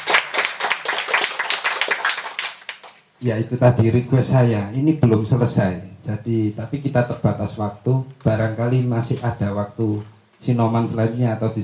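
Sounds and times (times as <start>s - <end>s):
audience applause: 0.0s - 3.0s
speech: 3.2s - 11.6s.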